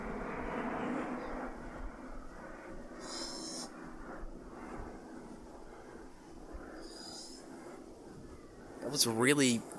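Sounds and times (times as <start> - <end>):
aircraft flying over near an airport: 0.0 - 9.7
speech: 9.0 - 9.7.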